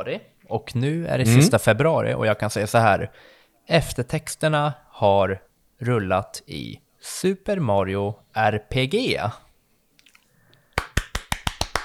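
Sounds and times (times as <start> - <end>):
speech: 0.0 - 9.4
brief hand clapping: 10.8 - 11.8.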